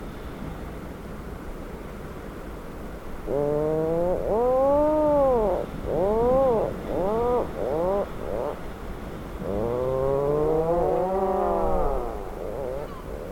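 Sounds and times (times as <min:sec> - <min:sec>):
Atlantic puffin groaning calls: 0:03.2 - 0:13.3.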